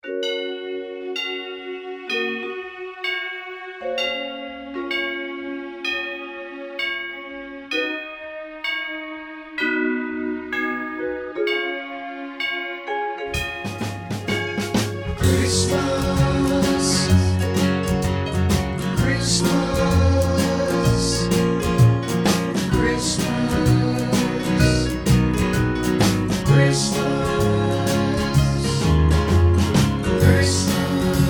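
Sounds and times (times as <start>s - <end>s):
instrumental music with harmony: 0.0s - 31.2s.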